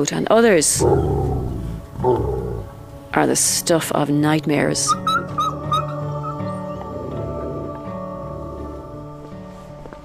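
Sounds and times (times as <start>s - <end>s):
speech: 0.0s - 2.4s, 3.1s - 5.1s
wolves howling in a zoo: 0.8s - 2.8s, 4.9s - 9.3s.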